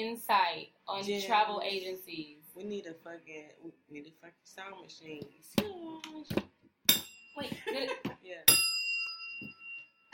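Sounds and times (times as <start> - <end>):
speech: 0.0 - 6.6, 7.4 - 8.7
tequila bell ringing: 6.9 - 7.7, 8.5 - 10.1.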